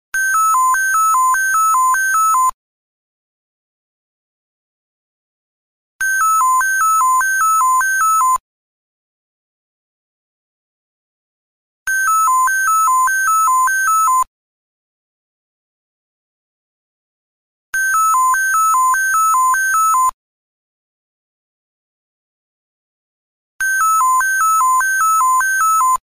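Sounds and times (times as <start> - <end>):
Nextel phone ringtone: 0.2 - 2.6, 6.0 - 8.4, 11.9 - 14.3, 17.8 - 20.2, 23.6 - 26.0.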